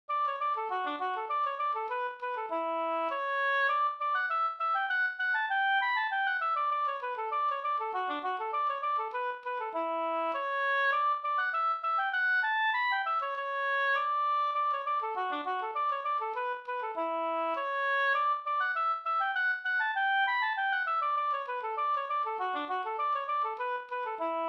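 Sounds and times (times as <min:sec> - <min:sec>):
slangpolska folk dance tune: 0:00.1 - 0:24.4.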